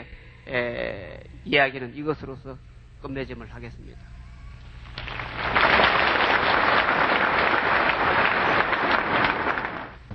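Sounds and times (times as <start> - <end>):
speech: 0.5 - 4.1
crowd clapping: 4.9 - 10.0.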